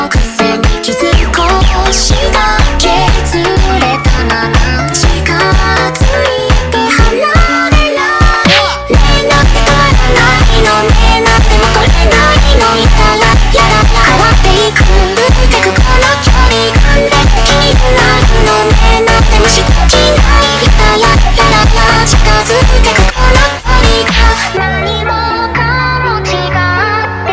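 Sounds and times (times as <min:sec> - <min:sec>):
slowed montagem music: 0:00.1 - 0:27.2.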